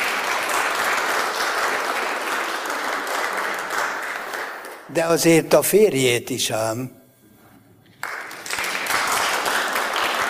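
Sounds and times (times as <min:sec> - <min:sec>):
audience clapping: 0:00.0 - 0:05.3, 0:07.9 - 0:10.2
speech: 0:04.9 - 0:07.0.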